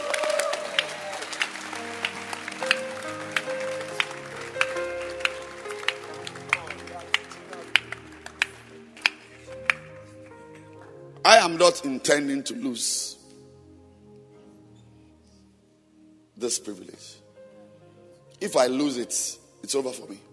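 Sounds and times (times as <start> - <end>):
audience clapping hands in a steady rhythm: 0.0 - 11.0
speech: 11.6 - 13.2, 16.5 - 17.2, 18.4 - 20.3.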